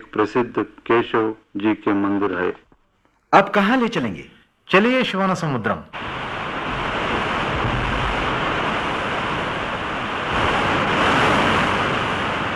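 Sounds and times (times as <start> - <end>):
speech: 0.1 - 2.6, 3.3 - 6.1
waterfall on a river: 6.0 - 12.5.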